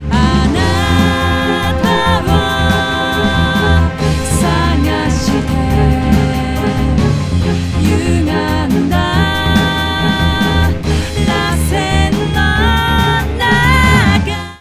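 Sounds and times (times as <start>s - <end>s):
music loop: 0.0s - 14.5s.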